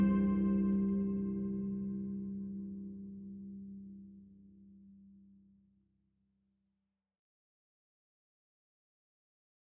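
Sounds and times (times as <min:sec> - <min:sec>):
trumpet: 0:00.0 - 0:01.5
harp: 0:00.0 - 0:04.2.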